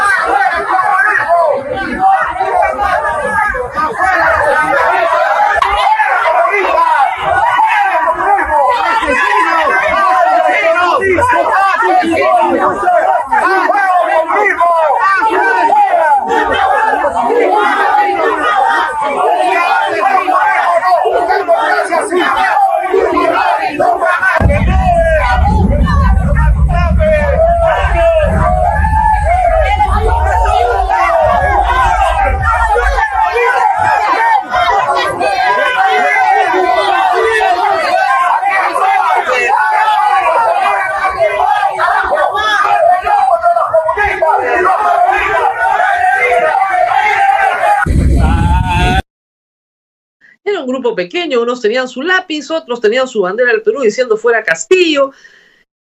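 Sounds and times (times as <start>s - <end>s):
agitated crowd shouting and chanting: 0.0s - 49.0s
heavy low rumble: 24.4s - 34.1s, 47.9s - 49.0s
speech: 51.0s - 55.4s.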